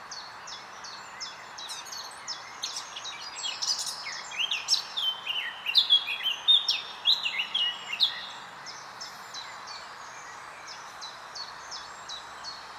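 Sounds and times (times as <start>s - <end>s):
Eurasian blackcap singing: 0.1s - 8.4s.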